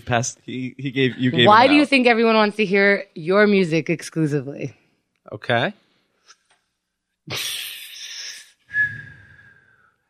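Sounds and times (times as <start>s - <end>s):
speech: 0.1s - 5.8s, 7.3s - 7.7s
whistle lollipop being blown: 8.7s - 10.0s.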